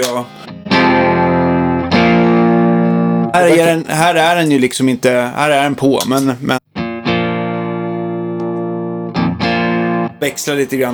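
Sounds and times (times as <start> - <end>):
speech: 0.0 - 0.4, 3.4 - 6.7, 10.2 - 10.9
overdriven electric guitar strummed chords: 0.0 - 3.4, 6.7 - 10.2.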